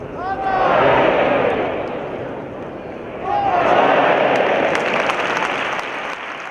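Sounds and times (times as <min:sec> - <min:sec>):
scattered shouts: 0:00.1 - 0:02.3, 0:03.1 - 0:04.9
large bullring crowd applauding and cheering: 0:03.6 - 0:06.4.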